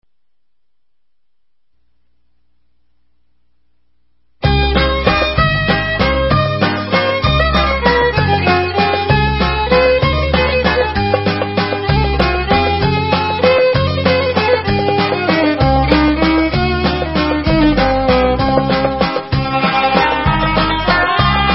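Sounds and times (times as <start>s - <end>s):
instrumental Israeli dance music: 4.4s - 21.5s.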